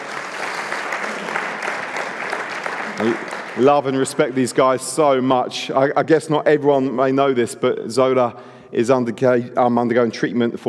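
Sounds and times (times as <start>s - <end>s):
audience applause: 0.0s - 4.6s
speech: 3.0s - 10.6s.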